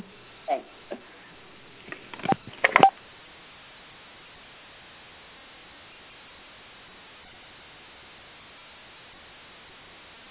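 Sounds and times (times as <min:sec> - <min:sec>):
telephone dialing out a call: 0:02.2 - 0:02.9.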